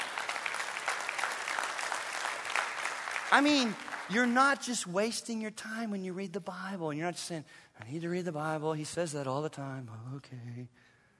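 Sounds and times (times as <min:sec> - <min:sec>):
audience applause: 0:00.0 - 0:04.6
speech: 0:03.3 - 0:10.9.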